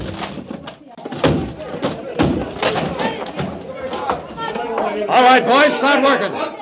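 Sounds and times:
door being broken down: 0.0 - 4.3
speech: 5.0 - 6.5.

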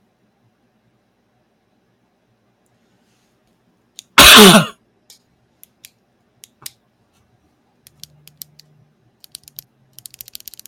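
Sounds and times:
harsh cough after a drink of Coke went down wrong: 4.2 - 4.8.

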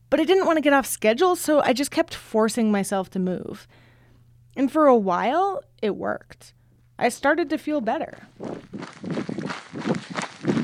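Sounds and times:
speech: 0.1 - 3.9, 4.6 - 9.3
water bottles sloshing in pack while running: 8.4 - 10.6.

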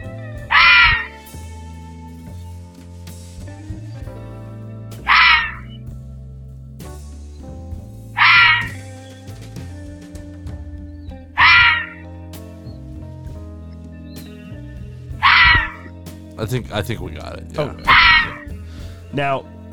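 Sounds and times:
red fox scream: 0.0 - 1.3, 5.0 - 5.8, 8.2 - 8.8, 11.4 - 12.0, 15.2 - 15.9, 17.7 - 18.6
speech: 16.4 - 18.0, 19.1 - 19.5.

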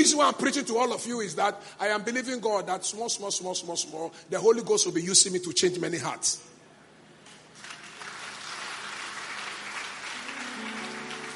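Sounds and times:
speech: 0.0 - 6.6
congregation clapping during a church sermon: 7.3 - 11.3.

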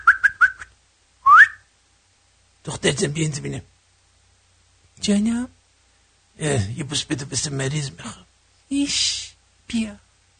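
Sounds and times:
human whistling: 0.0 - 1.7
speech: 2.6 - 3.7, 5.0 - 5.6, 6.4 - 10.0.

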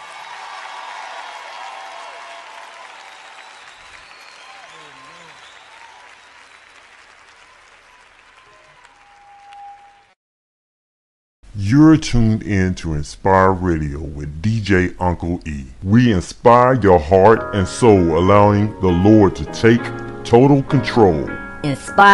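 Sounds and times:
audience clapping: 0.0 - 10.2
people whooping: 0.0 - 10.2
speech: 11.6 - 22.1.

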